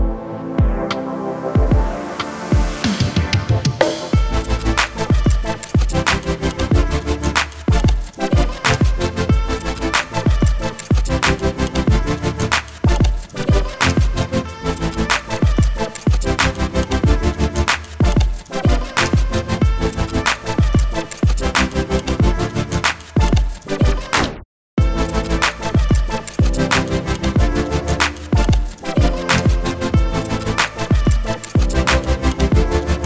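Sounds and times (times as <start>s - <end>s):
future bass music: 0.0s - 24.2s, 24.8s - 33.0s.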